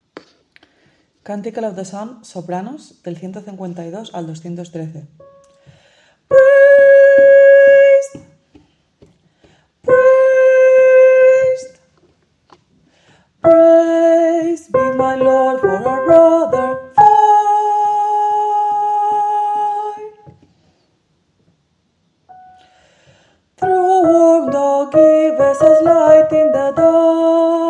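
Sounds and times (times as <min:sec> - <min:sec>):
soprano singing: 0:06.3 - 0:08.3, 0:09.8 - 0:11.8, 0:13.4 - 0:20.3, 0:23.6 - 0:27.6.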